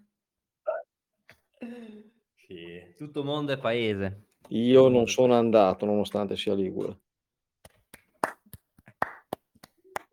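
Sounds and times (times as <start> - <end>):
speech: 1.6 - 7.0
applause: 8.2 - 10.1.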